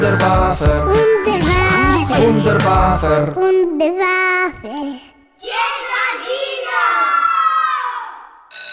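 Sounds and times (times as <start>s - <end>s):
speech: 0.1s - 0.9s, 2.2s - 5.7s
children shouting and whooping at school recess: 5.4s - 8.4s.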